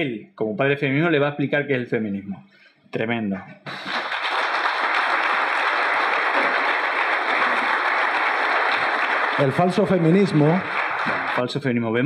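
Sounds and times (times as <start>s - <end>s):
speech: 0.0s - 4.0s, 9.4s - 12.0s
sparse audience applause in played video: 3.7s - 12.0s.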